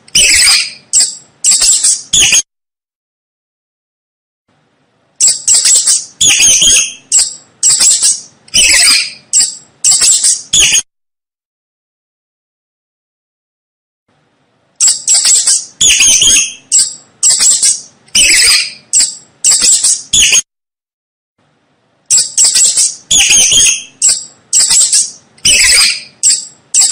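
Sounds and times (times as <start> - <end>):
mouse squeaking: 0.1 - 2.5, 5.2 - 10.9, 14.8 - 20.5, 22.1 - 26.9.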